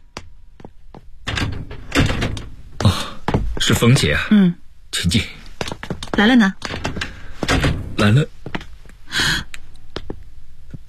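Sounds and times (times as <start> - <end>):
door opening: 1.2 - 3.8, 5.6 - 8.2
speech: 3.7 - 5.4, 6.2 - 6.6, 8.0 - 8.4.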